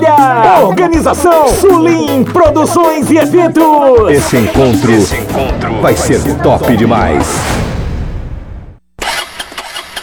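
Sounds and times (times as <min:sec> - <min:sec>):
speech: 0:00.6 - 0:07.6
motorcycle engine failing to start: 0:09.0 - 0:10.0.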